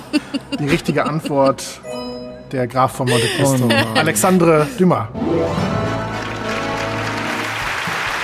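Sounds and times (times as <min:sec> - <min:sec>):
laughter: 0:00.0 - 0:01.8, 0:03.1 - 0:04.9
speech: 0:00.1 - 0:05.8
restrained applause: 0:06.0 - 0:08.2.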